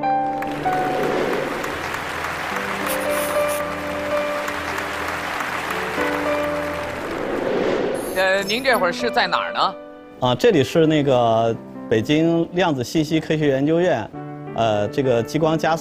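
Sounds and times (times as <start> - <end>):
audience applause: 0.0 - 8.0
speech: 8.4 - 15.7.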